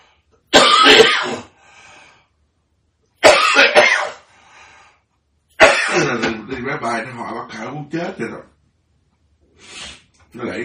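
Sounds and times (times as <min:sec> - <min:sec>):
person coughing: 0:00.5 - 0:01.6, 0:03.2 - 0:04.3, 0:05.6 - 0:06.2
speech: 0:06.7 - 0:08.6, 0:09.6 - 0:10.6.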